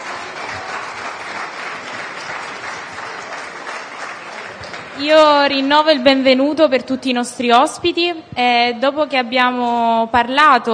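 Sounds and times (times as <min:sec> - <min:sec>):
audience applause: 0:00.0 - 0:06.2
speech: 0:05.0 - 0:10.7.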